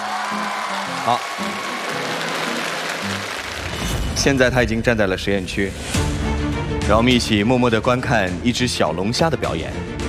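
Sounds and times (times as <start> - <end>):
studio audience applauding a presenter: 0.0 - 4.2
speech: 0.3 - 1.7, 4.2 - 6.1, 6.9 - 9.9.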